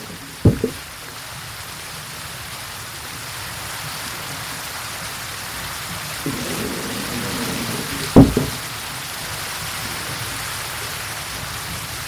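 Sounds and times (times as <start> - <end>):
heavy splash or thud: 0.0 - 0.8, 6.3 - 8.8
water flowing and splashing into a waterwheel: 0.0 - 12.0.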